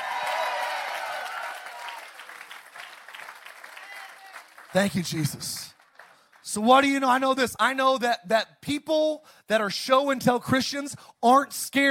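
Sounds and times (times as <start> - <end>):
audience hand clapping: 0.0 - 7.0
speech: 4.7 - 5.8, 6.5 - 11.9.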